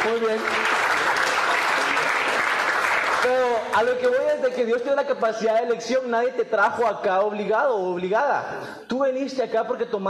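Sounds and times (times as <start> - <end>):
speech: 0.0 - 1.1, 3.2 - 10.0
audience applause: 0.0 - 4.2.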